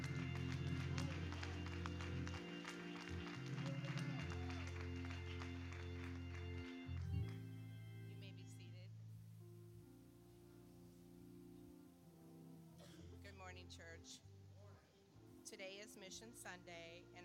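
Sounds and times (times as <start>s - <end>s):
audience clapping in thanksgiving: 0.0s - 7.6s
sustained low musical tones: 0.0s - 17.2s
speech: 13.4s - 14.3s, 15.5s - 17.2s.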